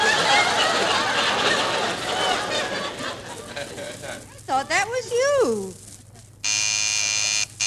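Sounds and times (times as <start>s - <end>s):
laughter: 0.0s - 4.8s
speech: 4.6s - 5.8s
harsh electric front door buzzer: 6.4s - 7.6s.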